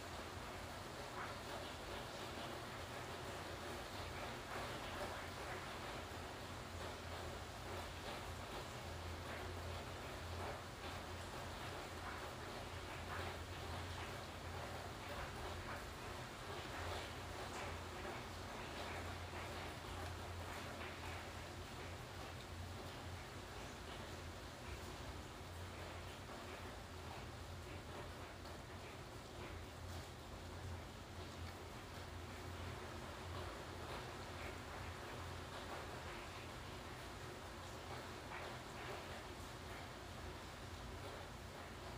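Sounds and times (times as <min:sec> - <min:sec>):
steady dense rain pouring: 0:00.0 - 0:41.9.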